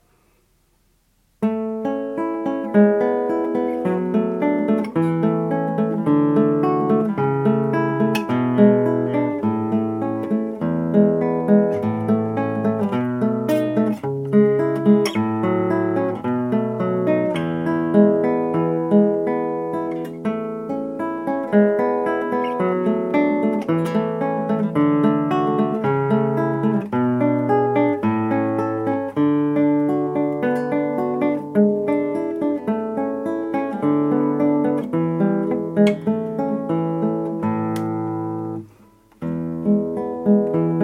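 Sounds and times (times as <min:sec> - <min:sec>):
guitar in just intonation: 0:01.2 - 0:40.8.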